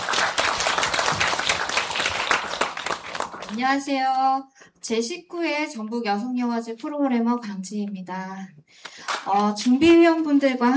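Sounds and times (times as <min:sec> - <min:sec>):
audience applause: 0:00.0 - 0:03.6
speech: 0:03.5 - 0:10.7.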